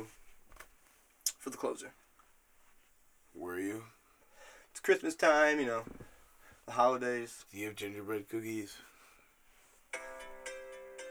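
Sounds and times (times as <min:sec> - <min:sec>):
speech: 0:01.6 - 0:02.0, 0:03.4 - 0:04.0, 0:04.8 - 0:06.0, 0:06.7 - 0:08.9
phone ringtone: 0:09.9 - 0:11.0.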